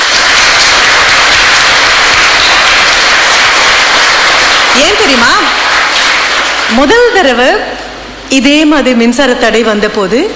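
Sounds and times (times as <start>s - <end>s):
audience applauding: 0.0s - 7.2s
speech: 4.8s - 5.5s, 6.7s - 7.7s, 8.3s - 10.3s.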